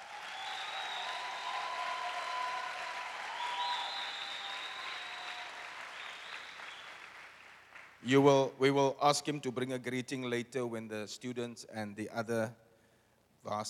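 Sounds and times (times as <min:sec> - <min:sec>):
audience applause welcoming a visiting pastor and his wife at a Bible school gathering: 0:00.0 - 0:08.0
speech: 0:08.0 - 0:12.6, 0:13.4 - 0:13.6.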